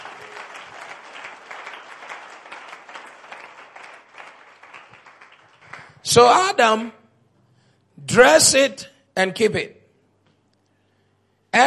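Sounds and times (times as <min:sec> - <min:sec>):
audience clapping hands: 0:00.0 - 0:06.2
speech: 0:06.0 - 0:07.0, 0:08.2 - 0:09.8.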